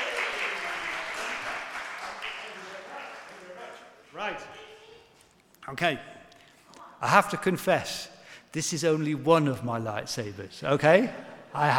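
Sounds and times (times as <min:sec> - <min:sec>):
audience applause: 0:00.0 - 0:03.8
speech: 0:04.2 - 0:04.6, 0:05.7 - 0:06.2, 0:07.0 - 0:11.7.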